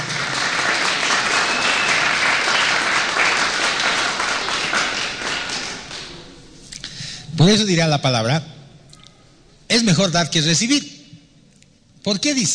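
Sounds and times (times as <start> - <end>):
crowd applauding: 0.0 - 6.4
speech: 7.4 - 8.6, 9.7 - 10.9, 12.0 - 12.5.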